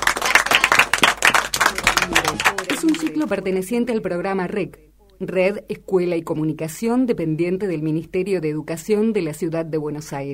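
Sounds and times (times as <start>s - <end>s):
group clapping at the close of a school radio program: 0.0s - 4.0s
speech: 3.2s - 10.3s.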